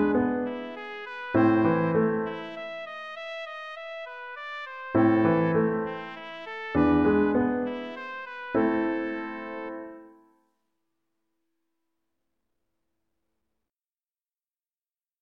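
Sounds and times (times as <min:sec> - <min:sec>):
trumpet melody: 0:00.0 - 0:10.3.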